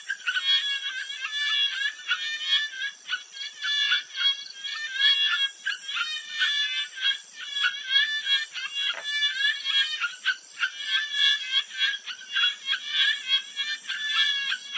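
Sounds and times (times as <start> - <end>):
frogs giving mating calls at a jungle pond at night in Thailand: 0.0 - 14.7.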